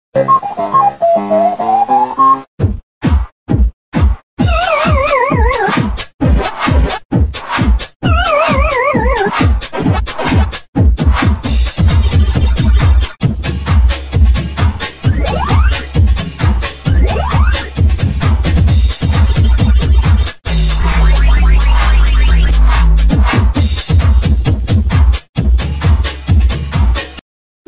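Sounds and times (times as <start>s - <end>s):
techno music: 0.2s - 2.5s, 4.4s - 27.1s.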